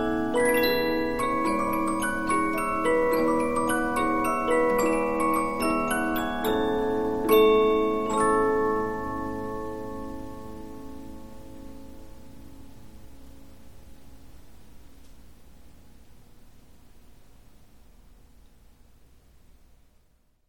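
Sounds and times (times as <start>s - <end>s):
Polyphon 15-inch disc music box playing: 0.0s - 10.8s.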